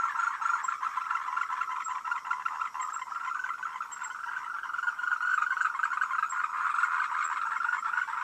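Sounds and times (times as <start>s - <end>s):
frogs calling in a dense chorus of overlapping croaks: 0.0s - 8.2s.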